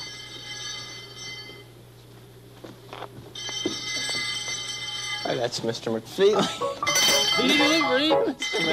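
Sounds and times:
bell ringing: 0:00.0 - 0:01.7, 0:03.4 - 0:05.4, 0:06.8 - 0:08.7
steady low hum: 0:00.0 - 0:08.7
speech: 0:05.3 - 0:08.7.

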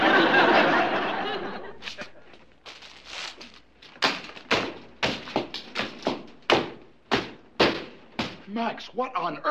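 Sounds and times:
laughter: 0:00.0 - 0:02.4
French bread loaf smashing communications equipment: 0:01.8 - 0:08.4
speech: 0:08.6 - 0:09.4.

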